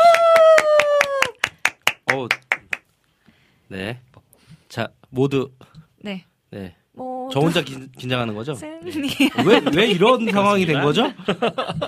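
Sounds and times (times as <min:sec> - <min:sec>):
audience clapping: 0:00.0 - 0:02.9
speech: 0:03.7 - 0:11.8
laughter: 0:08.9 - 0:11.8.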